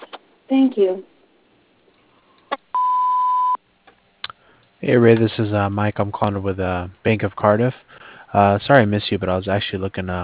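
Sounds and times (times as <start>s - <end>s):
speech: 0.5s - 1.1s, 4.8s - 10.2s
answering machine beep tone: 2.7s - 3.6s.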